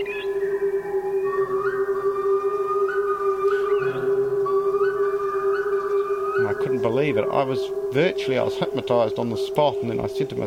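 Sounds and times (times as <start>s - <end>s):
speech: 0.0s - 0.2s, 6.8s - 10.4s
bird call: 0.0s - 7.7s.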